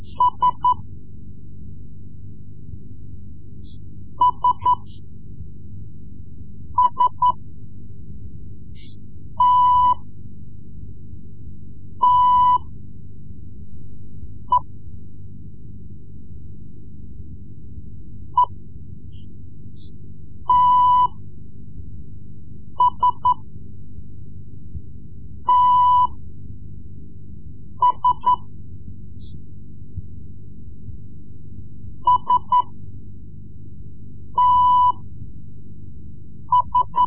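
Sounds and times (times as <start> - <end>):
Morse code lessons: 0.0 - 0.8, 4.2 - 5.0, 6.8 - 7.4, 9.4 - 10.1, 12.0 - 12.7, 20.5 - 21.2, 22.8 - 23.4, 25.4 - 26.2, 27.8 - 28.4, 32.1 - 32.8, 34.4 - 35.0, 36.5 - 37.0.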